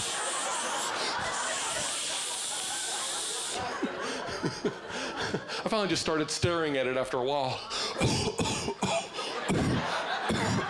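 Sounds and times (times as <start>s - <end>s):
aerosol deodorant can spraying continuously: 0.0s - 3.6s
laughter: 0.0s - 5.6s, 7.7s - 10.6s
speech: 5.7s - 8.5s.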